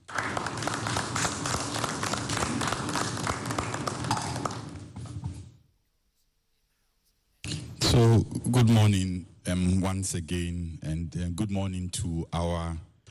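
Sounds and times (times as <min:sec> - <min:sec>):
audience applause: 0:00.0 - 0:04.7
speech: 0:08.0 - 0:12.9.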